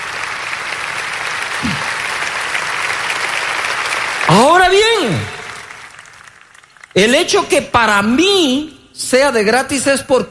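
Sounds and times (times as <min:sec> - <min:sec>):
audience applause: 0:00.0 - 0:07.3
speech: 0:07.0 - 0:10.2.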